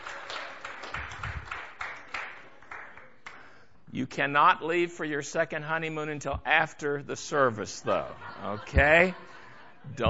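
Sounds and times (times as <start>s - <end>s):
audience applauding newlyweds: 0.0s - 3.4s
speech: 4.0s - 10.0s
laughter: 7.7s - 10.0s.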